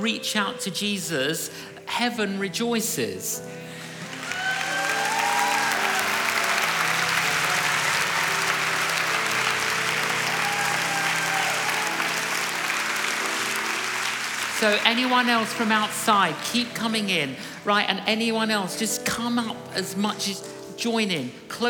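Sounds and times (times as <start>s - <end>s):
speech: 0.0s - 3.8s, 14.6s - 21.6s
people applauding: 3.8s - 17.6s.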